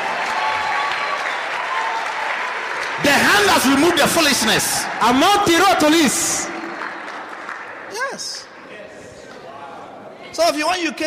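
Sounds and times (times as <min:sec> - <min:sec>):
church audience applauding: 0:00.0 - 0:08.5
speech: 0:03.0 - 0:06.5, 0:10.5 - 0:11.0.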